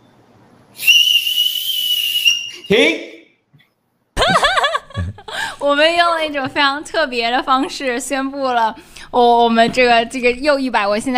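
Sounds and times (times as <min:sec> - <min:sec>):
low noise: 0:00.0 - 0:11.1
whistle blown to stop: 0:00.8 - 0:02.9
speech: 0:02.7 - 0:03.1, 0:05.6 - 0:11.1
laughter: 0:04.2 - 0:05.4.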